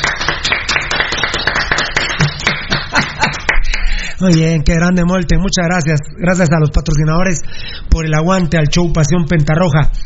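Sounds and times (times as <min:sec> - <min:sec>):
group of people clapping: 0:00.0 - 0:04.0
laughter: 0:02.3 - 0:03.6
speech: 0:04.2 - 0:10.0.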